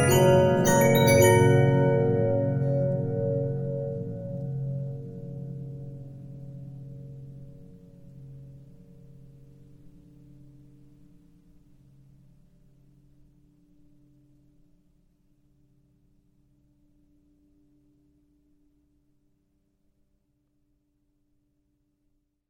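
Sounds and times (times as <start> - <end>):
Regina 15-inch disc music box: 0.0 - 3.9.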